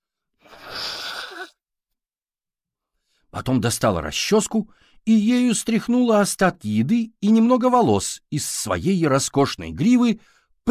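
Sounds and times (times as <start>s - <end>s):
woman loudly blowing her nose: 0.4s - 1.6s
speech: 3.4s - 10.6s.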